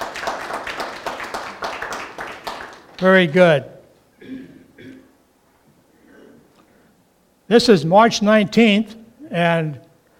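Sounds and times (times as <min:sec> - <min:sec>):
audience at New Hope clapping to welcome two new guests: 0:00.0 - 0:03.4
speech: 0:03.0 - 0:03.7, 0:07.5 - 0:09.8.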